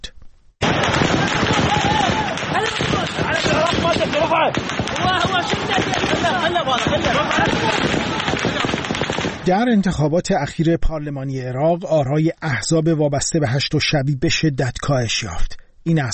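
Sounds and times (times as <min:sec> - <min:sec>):
roar of a shouting crowd: 0:00.6 - 0:09.4
rapid gunshots fired into the air: 0:00.6 - 0:09.6
speech: 0:09.5 - 0:16.1.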